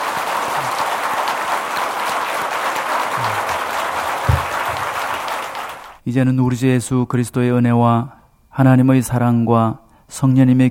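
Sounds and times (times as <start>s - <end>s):
audience applause: 0.0s - 6.0s
speech: 6.1s - 10.6s.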